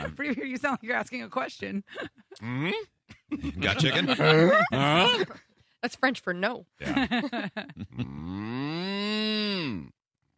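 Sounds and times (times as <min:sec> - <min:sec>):
laughter: 0:00.0 - 0:00.7, 0:03.1 - 0:05.5, 0:06.8 - 0:08.2
speech: 0:00.1 - 0:10.0
person imitating a cow moo: 0:08.0 - 0:10.0.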